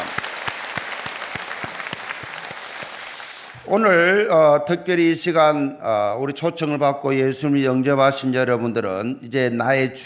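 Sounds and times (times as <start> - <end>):
audience applauding: 0.0 - 3.7
speech: 3.7 - 10.0.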